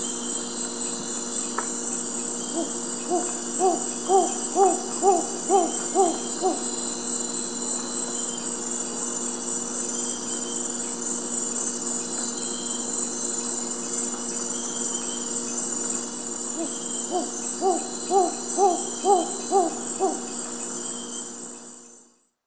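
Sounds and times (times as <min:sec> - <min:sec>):
Ciccaba virgata song in South American eastern lowlands: 0:02.2 - 0:08.4, 0:15.9 - 0:21.3.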